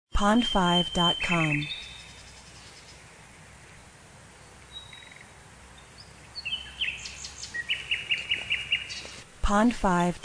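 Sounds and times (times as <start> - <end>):
speech: 0.2 - 1.8, 9.5 - 10.2
background hiss: 0.2 - 10.2
birds singing: 0.4 - 3.6, 4.3 - 9.2.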